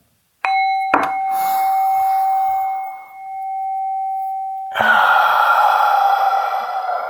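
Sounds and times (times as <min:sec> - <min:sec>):
ringing bell tone: 0:00.4 - 0:04.8
loud forceful exhale through mouth: 0:01.3 - 0:03.0, 0:04.7 - 0:07.0
loud inhale through nose: 0:01.3 - 0:03.0, 0:04.7 - 0:07.0.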